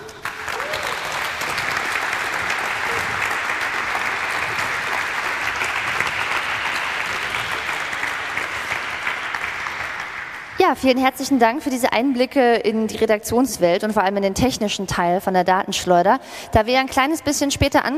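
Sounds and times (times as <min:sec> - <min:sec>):
audience applause: 0:00.0 - 0:10.6
speech: 0:10.7 - 0:17.9.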